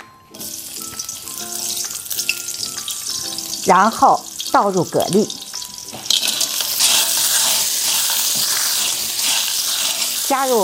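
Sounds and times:
scallion and ginger slices sizzling in hot oil in a heated wok: 0.3s - 10.6s
speech: 3.6s - 5.4s, 10.3s - 10.6s.

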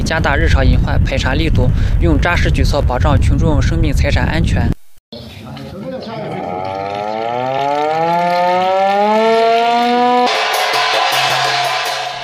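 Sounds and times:
speech: 0.1s - 5.2s
air-raid siren: 6.2s - 12.2s.

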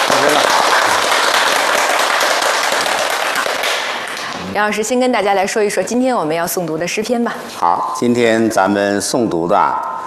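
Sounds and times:
applause: 0.0s - 4.4s
speech: 4.6s - 10.0s.

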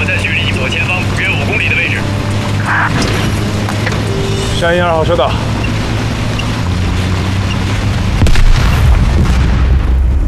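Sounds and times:
steady low engine rumble: 0.0s - 10.2s
speech: 4.6s - 5.5s
landmine explosion: 8.1s - 10.2s.

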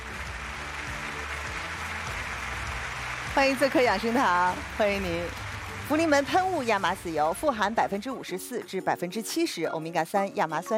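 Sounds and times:
studio audience applause: 0.0s - 7.9s
speech: 3.4s - 10.7s.

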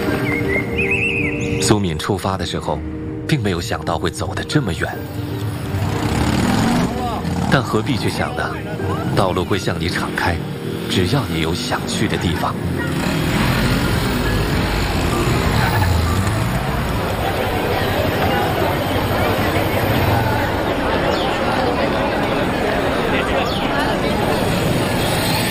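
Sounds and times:
hundreds of motorcycles gathering: 0.0s - 1.8s, 4.1s - 25.4s
speech: 1.7s - 5.4s, 7.5s - 13.3s.

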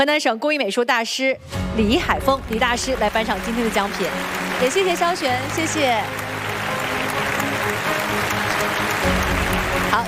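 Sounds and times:
speech: 0.0s - 6.2s
award ceremony audience applauding the grand prize winner: 2.0s - 10.0s.

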